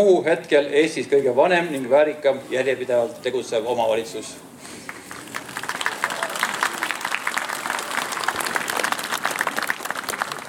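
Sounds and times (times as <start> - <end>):
speech: 0.0 - 4.8
audience applause: 4.8 - 10.4.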